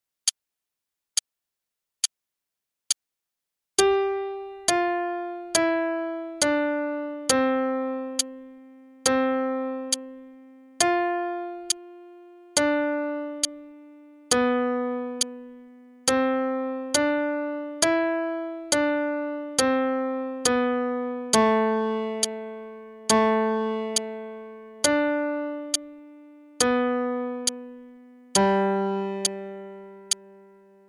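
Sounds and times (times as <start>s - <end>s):
piano melody: 3.8s - 30.8s.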